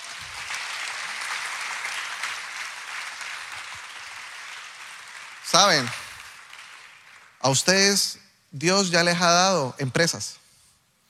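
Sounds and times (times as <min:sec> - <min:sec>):
audience applause: 0:00.0 - 0:08.0
speech: 0:05.5 - 0:06.0, 0:07.4 - 0:10.4.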